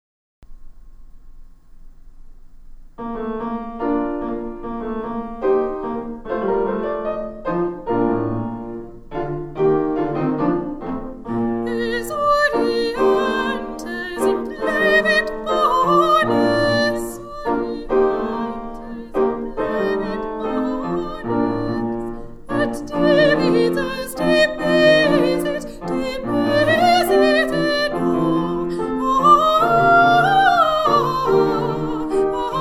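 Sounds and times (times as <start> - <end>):
soprano singing: 3.8 - 32.5.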